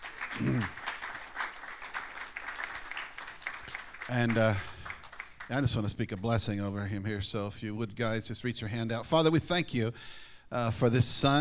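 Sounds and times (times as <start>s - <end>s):
audience applause at a morning church service: 0.0s - 5.9s
speech: 0.4s - 0.8s, 4.1s - 4.7s, 5.5s - 11.3s.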